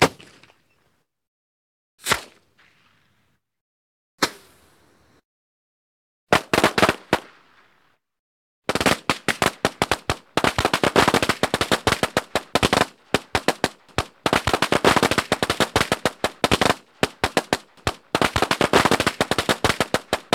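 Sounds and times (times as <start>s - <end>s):
firework: 6.3s - 7.8s, 8.7s - 20.3s.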